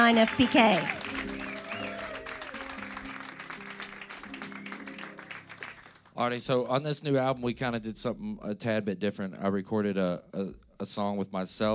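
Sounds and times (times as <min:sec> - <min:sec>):
speech: 0:00.0 - 0:01.0, 0:06.2 - 0:11.7
audience applause welcoming a band on a live lunchtime radio show: 0:00.0 - 0:06.7.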